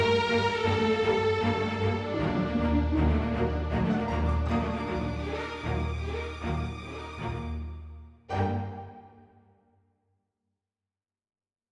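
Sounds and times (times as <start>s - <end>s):
epic orchestra strings: 0.0s - 9.4s.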